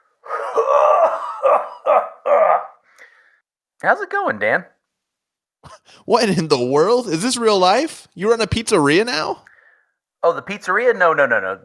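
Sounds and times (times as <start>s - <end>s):
person clearing throat with something caught in it: 0.2s - 2.8s
speech: 3.8s - 4.8s, 5.6s - 9.5s, 10.2s - 11.6s.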